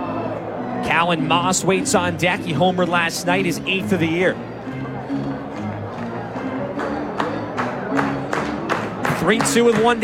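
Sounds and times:
speech: 0:00.8 - 0:05.2, 0:09.2 - 0:10.0
baseball stadium crowd cheering: 0:04.6 - 0:10.0
sharp claps: 0:05.5 - 0:10.0.

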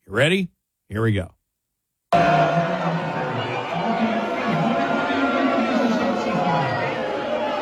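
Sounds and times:
speech: 0:00.1 - 0:01.4
large crowd booing: 0:02.1 - 0:07.6.

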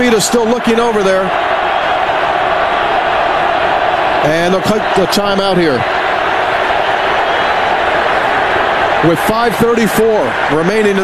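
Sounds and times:
crowd roar at an Arizona versus West Virginia college football game: 0:00.0 - 0:11.0
speech: 0:00.1 - 0:01.7, 0:04.2 - 0:06.2, 0:09.0 - 0:11.0.

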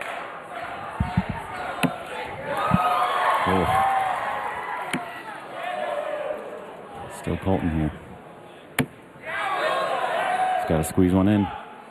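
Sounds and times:
crowd cheering and roaring at a darts match: 0:00.0 - 0:07.9, 0:09.2 - 0:11.8
sharp thuds: 0:01.0 - 0:02.0
speech: 0:07.3 - 0:08.1, 0:10.7 - 0:11.6.

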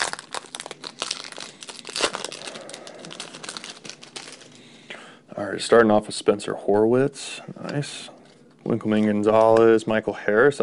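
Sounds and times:
2026 Topps Series One baseball card pack wrapper crinkling and tearing: 0:00.0 - 0:04.6
speech: 0:05.5 - 0:08.1, 0:08.7 - 0:10.6.

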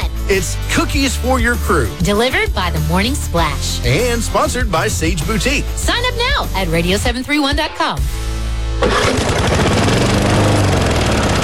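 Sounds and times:
speech: 0:00.3 - 0:08.2, 0:08.8 - 0:09.6
lawn mower engine running: 0:08.8 - 0:11.4.

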